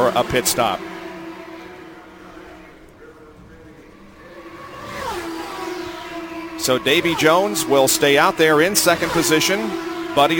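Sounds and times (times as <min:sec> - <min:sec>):
speech: 0:00.0 - 0:00.9, 0:06.6 - 0:10.3
Indy race cars lapping the Indianapolis 500 oval: 0:00.0 - 0:10.3.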